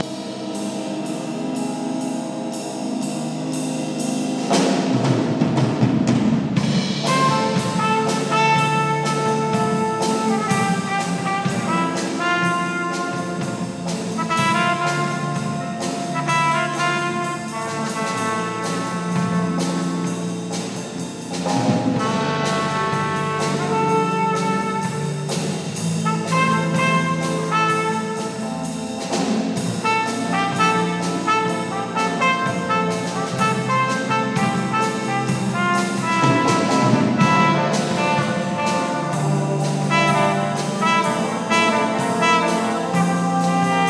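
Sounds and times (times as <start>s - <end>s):
very mellow jazz: 0.0s - 43.8s.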